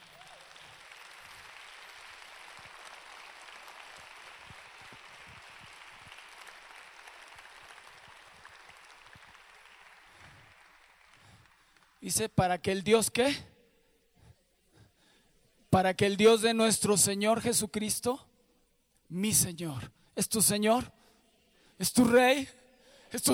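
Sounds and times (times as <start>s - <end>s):
audience applauding: 0.0s - 12.0s
speech: 12.0s - 13.5s, 15.8s - 18.3s, 19.1s - 21.0s, 21.8s - 23.3s.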